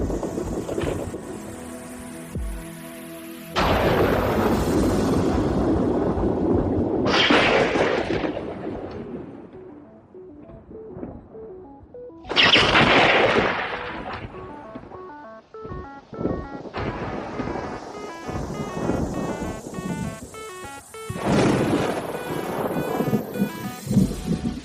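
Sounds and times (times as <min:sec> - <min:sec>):
spectacular electrical thunderstorm: 0:00.0 - 0:01.2, 0:03.6 - 0:09.6, 0:12.3 - 0:14.9, 0:15.7 - 0:24.6.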